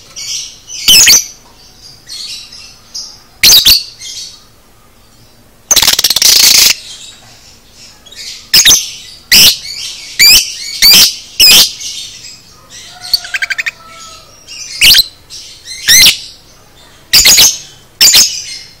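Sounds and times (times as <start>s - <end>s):
lovebird squawking: 0.8s - 1.3s, 3.4s - 4.1s, 5.7s - 6.8s, 8.2s - 12.0s, 12.6s - 16.4s, 17.1s - 18.7s.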